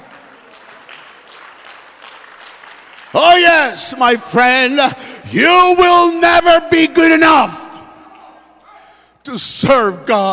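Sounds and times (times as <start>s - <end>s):
audience clapping hands: 0.0s - 4.3s
speech: 3.1s - 7.6s, 9.2s - 10.3s.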